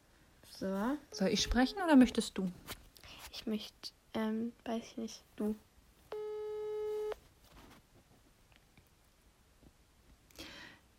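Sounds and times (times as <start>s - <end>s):
speech: 0.6s - 2.8s, 3.4s - 5.7s
phone ringback tone on an outgoing call: 1.1s - 2.0s, 6.1s - 7.2s.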